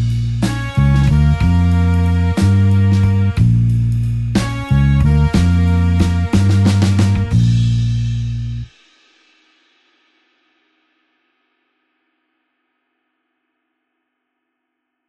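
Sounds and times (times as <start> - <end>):
slow blues horns in B flat: 0.0 - 8.7.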